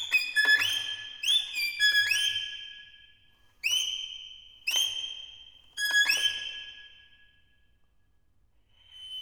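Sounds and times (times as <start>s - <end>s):
virtuoso violin caprice allegro: 0.0s - 2.6s, 5.8s - 6.8s.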